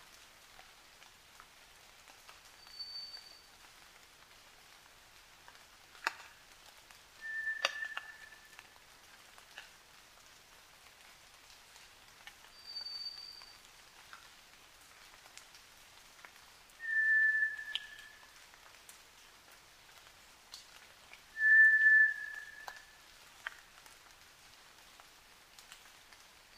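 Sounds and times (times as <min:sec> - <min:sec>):
White's thrush singing flat drawn-out whistles at night: 0:07.2 - 0:08.6, 0:16.8 - 0:18.3, 0:21.4 - 0:23.0.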